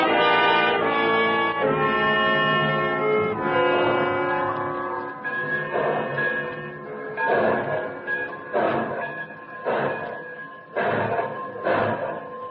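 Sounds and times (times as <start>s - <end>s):
train pulling out of a station: 0.1s - 12.4s
sustained tonal whine: 1.5s - 12.4s.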